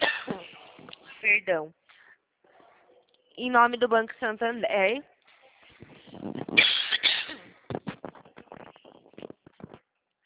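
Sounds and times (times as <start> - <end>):
person coughing after choking during a phone call: 0.0 - 0.6, 6.6 - 7.5
speech: 1.3 - 1.8, 3.4 - 5.1
breaths: 1.8 - 2.3.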